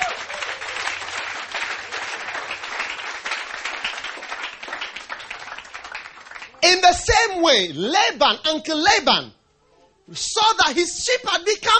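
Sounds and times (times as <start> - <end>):
audience applause: 0.0 - 6.6
speech: 6.7 - 9.4, 10.1 - 11.7.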